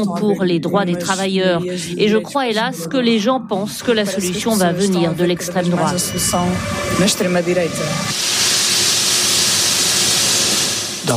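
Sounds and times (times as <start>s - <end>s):
speech: 0.0s - 8.4s
steam hissing from locomotives in a train station: 5.8s - 11.1s.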